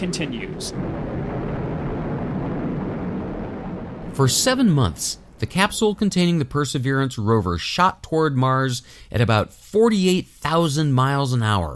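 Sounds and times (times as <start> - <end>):
speech: 0.0 - 1.2, 4.2 - 11.7
rocket engines roaring at liftoff of the Mars 2020 Perseverance launch: 0.0 - 6.8.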